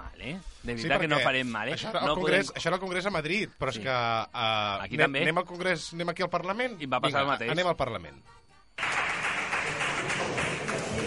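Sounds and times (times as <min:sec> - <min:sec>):
speech: 0:00.2 - 0:08.9
audience applauding: 0:08.8 - 0:11.0.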